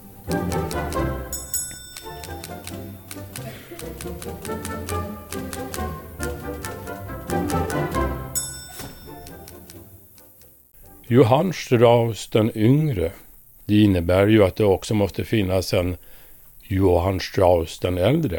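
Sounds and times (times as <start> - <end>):
old-fashioned typewriter typing in music: 0.3 - 8.1, 8.7 - 10.6
speech: 4.0 - 4.8, 11.1 - 18.3.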